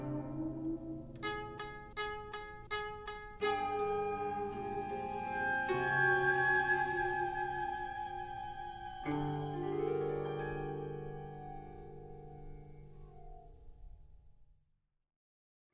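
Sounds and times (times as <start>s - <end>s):
shakuhachi: 0.0s - 2.0s, 3.4s - 13.6s
koto: 0.0s - 13.6s.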